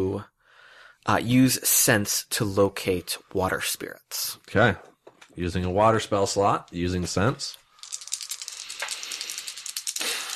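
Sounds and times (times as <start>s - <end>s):
speech: 1.0s - 7.6s
dice rolling: 7.0s - 10.3s.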